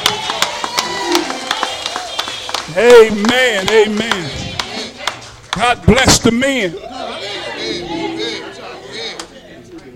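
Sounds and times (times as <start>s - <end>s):
audience clapping: 0.0s - 5.7s
speech: 2.7s - 4.4s, 5.5s - 6.9s.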